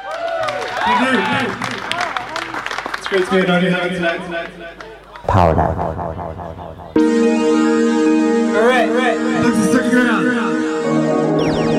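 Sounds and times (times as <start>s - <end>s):
audience clapping at a music night: 0.0s - 3.8s
speech: 0.9s - 1.8s, 3.1s - 11.7s.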